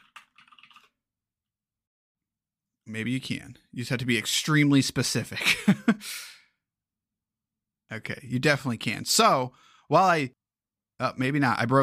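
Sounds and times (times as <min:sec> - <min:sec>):
computer keyboard typing: 0:00.0 - 0:01.0
speech: 0:02.9 - 0:06.3, 0:07.9 - 0:10.4, 0:11.0 - 0:11.8.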